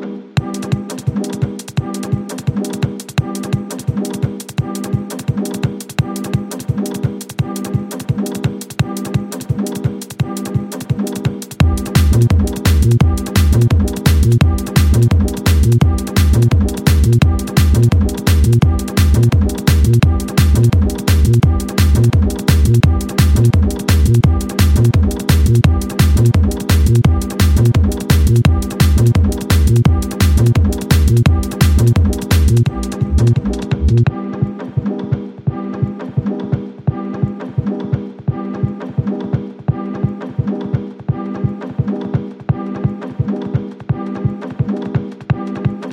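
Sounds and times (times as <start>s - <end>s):
sped-up phonk remix music: 0.4s - 45.8s.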